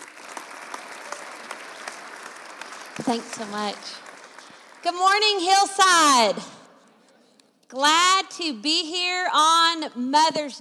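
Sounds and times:
audience applause welcoming a speaker on Mother's Day: 0.0s - 5.3s
speech: 3.0s - 4.0s, 4.8s - 6.6s, 7.7s - 10.5s.

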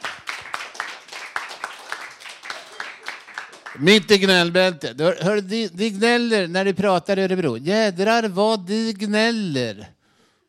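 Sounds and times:
audience applause: 0.0s - 4.0s
speech: 3.8s - 10.0s.

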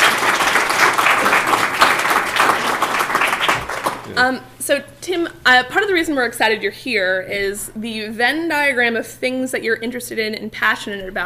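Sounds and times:
audience applause: 0.0s - 4.2s
speech: 4.2s - 11.2s.

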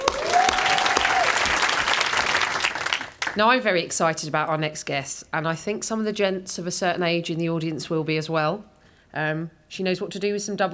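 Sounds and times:
crowd applause for comedian Jess Fostekew at a festival: 0.0s - 3.4s
speech: 3.4s - 10.7s.

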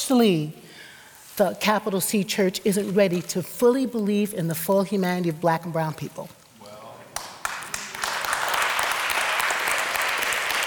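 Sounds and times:
speech: 0.1s - 0.6s, 1.4s - 6.4s
audience applause: 7.2s - 10.6s.

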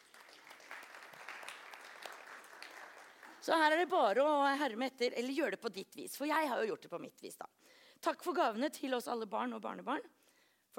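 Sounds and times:
audience clapping: 0.0s - 3.9s
speech: 3.4s - 10.7s.

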